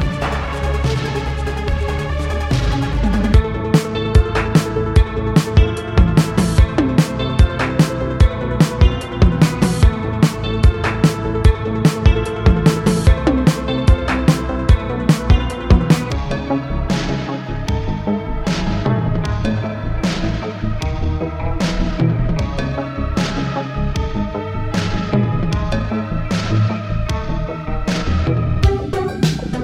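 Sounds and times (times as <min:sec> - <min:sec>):
darkwave music sample: 0:00.0 - 0:29.6.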